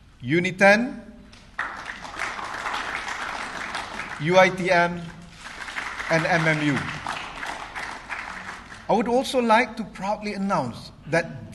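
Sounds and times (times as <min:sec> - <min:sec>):
speech: 0:00.2 - 0:01.1, 0:04.2 - 0:05.2, 0:06.1 - 0:07.0, 0:08.9 - 0:11.5
audience applause for IIUM university: 0:01.5 - 0:08.9.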